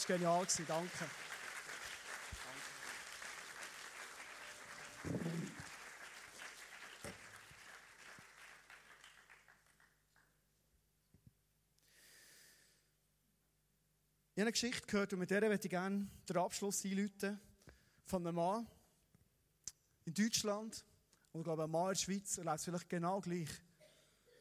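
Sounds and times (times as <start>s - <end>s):
audience applause: 0.0s - 10.3s
speech: 0.1s - 1.3s, 14.4s - 17.5s, 18.1s - 18.8s, 20.0s - 23.6s.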